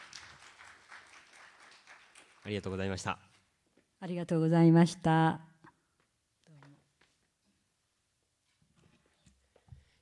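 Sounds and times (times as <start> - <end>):
audience applause: 0.0 - 3.2
speech: 2.4 - 3.3, 4.0 - 5.5.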